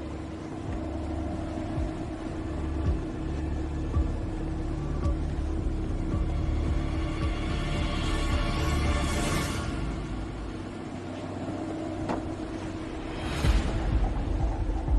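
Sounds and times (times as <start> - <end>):
boat engine droning: 0.0 - 14.9.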